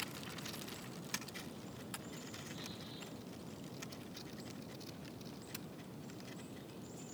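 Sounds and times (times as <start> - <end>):
dead dry leaves rustling in wind: 0.0 - 7.0.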